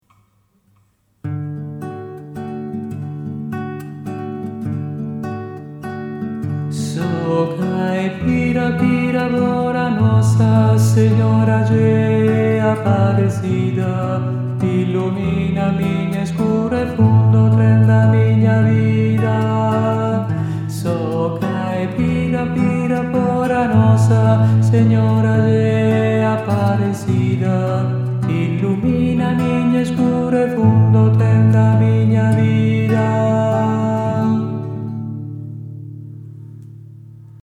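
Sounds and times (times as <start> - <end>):
tenor singing: 6.8 - 35.0.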